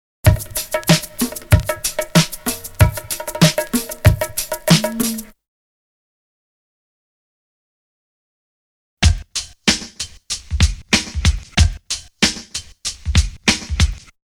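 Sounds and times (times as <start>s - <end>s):
drum loop: 0.2s - 5.3s, 9.0s - 14.2s.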